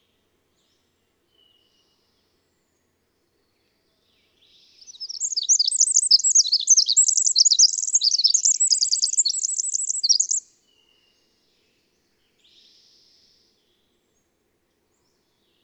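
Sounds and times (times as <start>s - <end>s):
twittering bird song with short trills: 4.8s - 10.4s.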